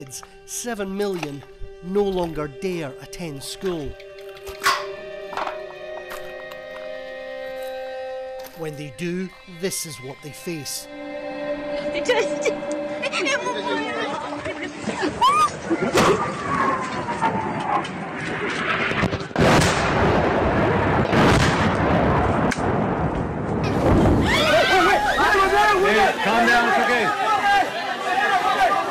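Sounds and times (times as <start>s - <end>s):
speech: 0.0s - 4.1s, 8.6s - 11.0s, 12.0s - 13.8s, 15.8s - 19.1s
people shouting and crying out in alarm: 15.1s - 17.7s, 24.2s - 28.9s
warplane bombing and artillery explosions: 16.1s - 24.6s.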